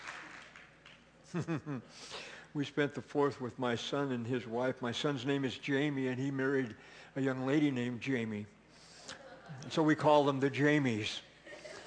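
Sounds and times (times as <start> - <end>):
audience applauding: 0.0 - 1.1
speech: 1.3 - 8.6, 9.5 - 11.3.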